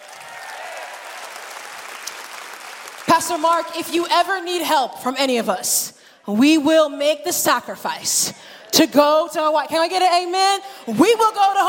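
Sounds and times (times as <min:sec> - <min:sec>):
audience applause: 0:00.0 - 0:03.4
speech: 0:03.2 - 0:11.6.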